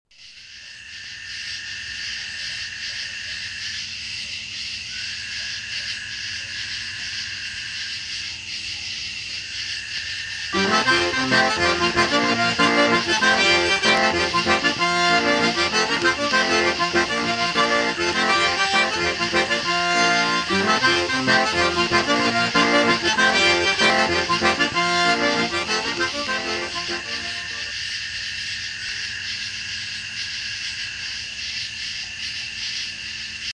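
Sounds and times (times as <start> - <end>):
Cajun music: 10.6 - 27.7.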